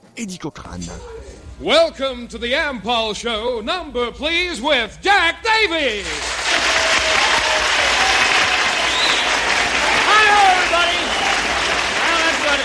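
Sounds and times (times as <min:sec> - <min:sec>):
speech: 0:00.2 - 0:06.7
audience applause: 0:05.9 - 0:12.6.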